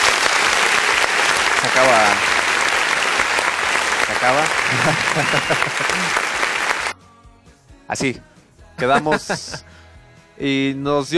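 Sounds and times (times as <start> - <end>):
applause: 0.0 - 7.0
speech: 1.6 - 2.4, 4.1 - 6.3, 7.9 - 9.7, 10.4 - 11.1
laughter: 3.8 - 6.8, 8.8 - 9.6.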